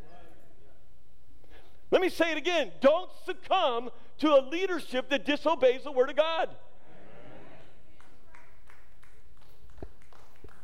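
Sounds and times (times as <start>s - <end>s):
speech: 1.9s - 6.6s
faint scattered audience applause in a reverberant room: 7.8s - 10.6s.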